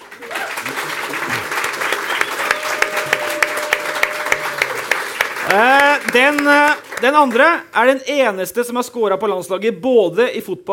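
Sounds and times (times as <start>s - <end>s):
crowd audience applause: 0.0s - 7.6s
speech: 5.5s - 10.7s.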